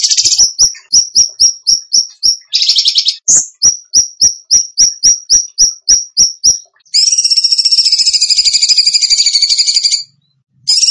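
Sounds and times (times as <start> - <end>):
bird chip calls: 0.0 - 10.8.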